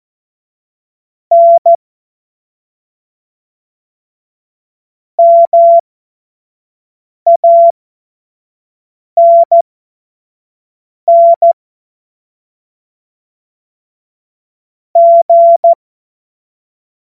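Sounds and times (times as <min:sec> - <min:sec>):
Morse code course tones: 0:01.3 - 0:01.8, 0:05.2 - 0:05.8, 0:09.2 - 0:09.6, 0:11.1 - 0:11.5, 0:15.0 - 0:15.8.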